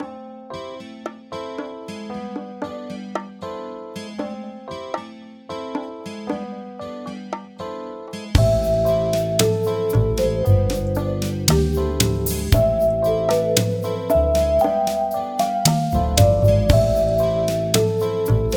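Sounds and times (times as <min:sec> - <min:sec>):
elevator music: 0:08.4 - 0:18.5.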